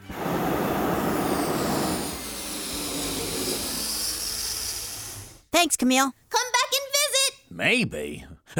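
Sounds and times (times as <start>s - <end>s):
hot air balloon burner firing: 0.0s - 5.5s
speech: 5.6s - 6.5s, 7.6s - 8.5s.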